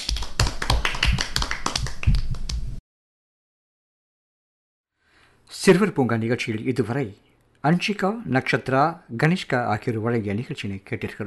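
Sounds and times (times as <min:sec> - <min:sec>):
group clapping hands: 0:00.0 - 0:02.8
speech: 0:05.5 - 0:11.2.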